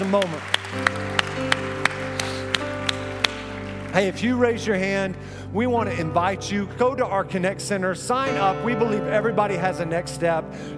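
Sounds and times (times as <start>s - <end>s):
audience clapping in a steady rhythm: 0.0s - 5.3s
speech: 0.1s - 1.3s, 3.9s - 10.7s
sustained low musical drone: 0.1s - 10.7s.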